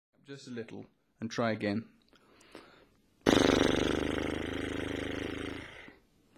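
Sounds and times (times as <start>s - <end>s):
speech: 0.3s - 2.0s
loose vibrating lips making hoarse buzz: 3.2s - 6.0s.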